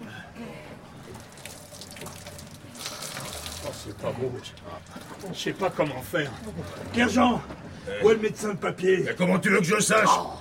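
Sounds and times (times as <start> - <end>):
water pouring in a splashing stream: 1.0 - 5.4
speech: 3.8 - 10.3.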